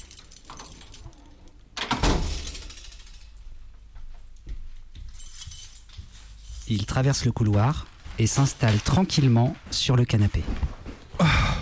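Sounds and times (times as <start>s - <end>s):
keys jingling: 0.0s - 9.3s
speech: 6.7s - 10.8s.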